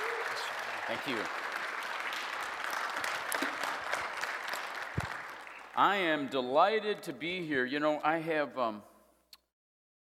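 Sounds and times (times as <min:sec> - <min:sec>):
audience applauding welcoming a speaker at a church summit: 0:00.0 - 0:06.5
speech: 0:00.9 - 0:01.4, 0:05.8 - 0:08.9.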